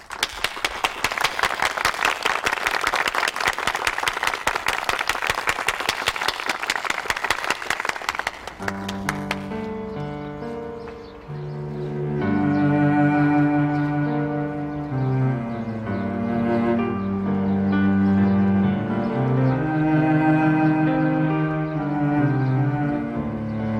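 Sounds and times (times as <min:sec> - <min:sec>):
audience applauding in honour of a worker: 0:00.0 - 0:09.7
sustained musical tones: 0:08.6 - 0:23.7.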